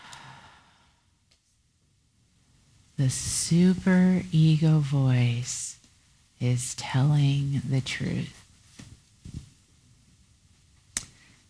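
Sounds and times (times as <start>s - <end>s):
deep breath in and out during a guided exercise: 0.0s - 1.2s
speech: 3.0s - 5.8s, 6.4s - 8.4s.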